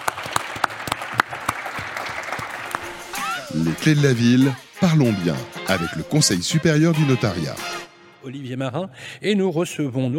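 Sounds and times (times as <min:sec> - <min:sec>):
crowd applause: 0:00.0 - 0:03.6
speech: 0:03.5 - 0:10.1.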